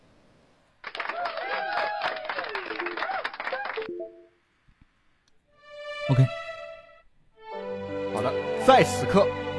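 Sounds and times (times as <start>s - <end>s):
audience applause: 0.8s - 4.0s
speech: 6.1s - 6.4s, 8.7s - 9.4s.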